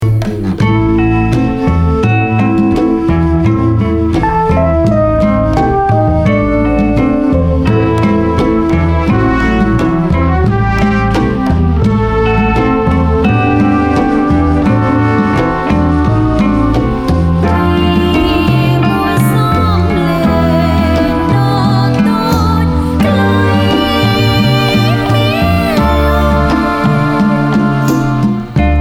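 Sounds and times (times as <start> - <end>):
golden flute: 0.0 - 28.8.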